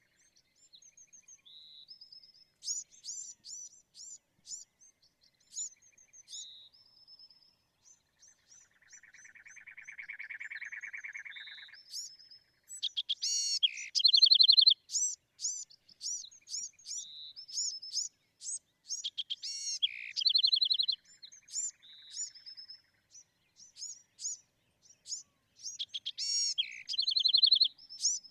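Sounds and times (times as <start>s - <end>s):
Bewick's wren singing: 0.9s - 6.8s, 7.9s - 28.2s.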